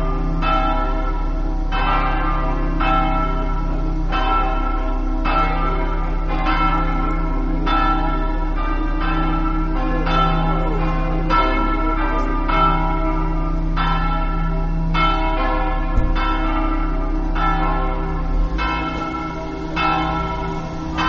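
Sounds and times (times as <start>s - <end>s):
bells on a mountain: 0.0s - 21.0s.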